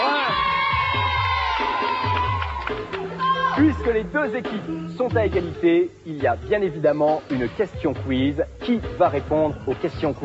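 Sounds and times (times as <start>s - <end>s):
audience applauding and cheering: 0.0s - 4.0s
speech: 3.6s - 10.2s.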